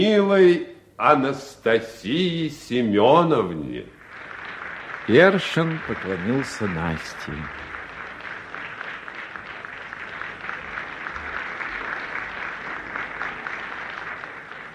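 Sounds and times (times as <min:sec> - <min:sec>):
speech: 0:00.0 - 0:04.0, 0:05.1 - 0:07.6
long applause: 0:03.6 - 0:14.7.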